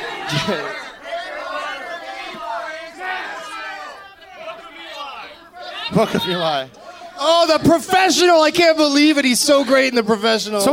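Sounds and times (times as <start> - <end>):
laughter: 0.0 - 8.2
audience shouting out answers: 0.0 - 10.0
speech: 0.3 - 0.8, 5.9 - 10.7.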